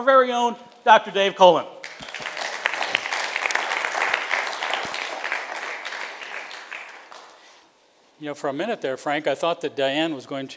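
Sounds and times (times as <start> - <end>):
speech: 0.0 - 1.8, 8.2 - 10.5
audience applauding to welcome a guest speaker: 1.8 - 7.6.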